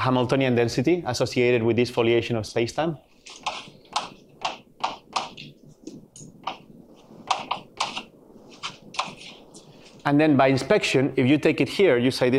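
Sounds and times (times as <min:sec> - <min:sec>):
speech: 0:00.0 - 0:03.7, 0:10.1 - 0:12.3
writing on a board during a physics lecture: 0:03.4 - 0:09.7.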